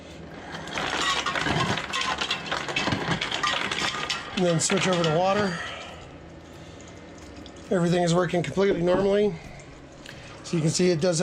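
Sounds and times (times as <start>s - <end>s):
ice cubes clattering out of refrigerator dispenser: 0.4s - 6.1s
refrigerator dispenser whirring: 0.4s - 6.1s
speech: 4.4s - 5.7s, 7.7s - 9.5s, 10.5s - 11.2s.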